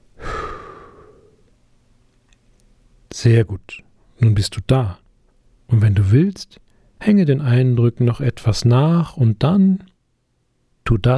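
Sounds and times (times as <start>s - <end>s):
deep breath in and out: 0.1s - 1.5s
speech: 3.2s - 5.0s, 5.7s - 9.9s, 10.9s - 11.1s.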